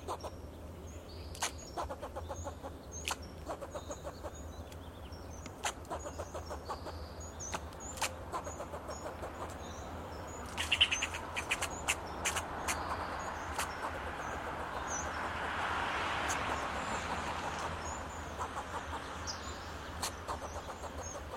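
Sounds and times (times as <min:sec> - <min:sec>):
fox squirrel clucking and barking: 0:00.0 - 0:00.4, 0:01.3 - 0:21.3.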